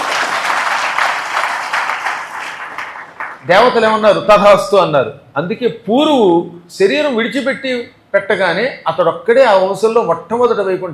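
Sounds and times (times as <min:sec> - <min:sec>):
audience clapping during a storytelling discourse: 0:00.0 - 0:03.5
speech: 0:03.5 - 0:10.9.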